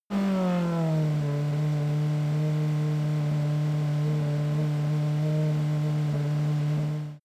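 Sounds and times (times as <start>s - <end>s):
F1 racing car engine decelerating to idle: 0.1s - 7.2s.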